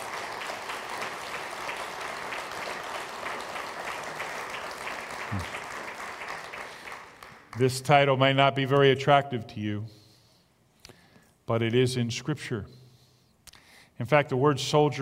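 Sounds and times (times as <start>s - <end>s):
audience round of applause: 0.0s - 7.7s
speech: 5.3s - 5.6s, 7.6s - 10.0s, 11.5s - 12.8s, 14.0s - 15.0s.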